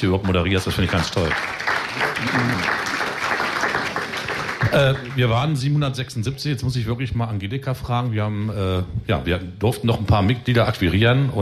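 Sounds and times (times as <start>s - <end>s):
speech: 0.0s - 2.8s, 4.7s - 11.3s
crowd applauding: 0.0s - 5.6s.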